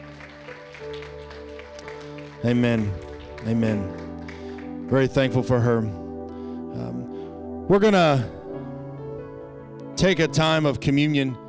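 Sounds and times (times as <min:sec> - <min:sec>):
audience applause: 0:00.0 - 0:05.1
speech: 0:00.8 - 0:01.6, 0:02.4 - 0:04.0, 0:04.9 - 0:06.0, 0:06.8 - 0:07.1, 0:07.7 - 0:08.4, 0:10.0 - 0:11.4.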